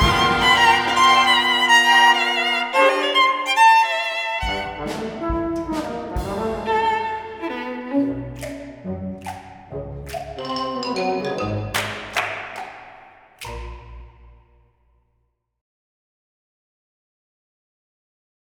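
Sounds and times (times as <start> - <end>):
swing music: 0.0 - 12.8.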